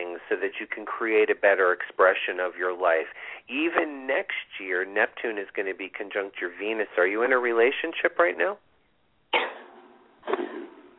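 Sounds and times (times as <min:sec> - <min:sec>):
speech: 0:00.3 - 0:08.7
person sneezing: 0:09.3 - 0:10.9.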